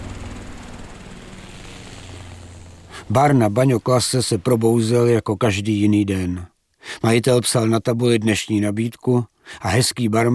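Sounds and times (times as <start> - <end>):
helicopter droning over the sea: 0.0 - 6.1
speech: 3.0 - 10.3.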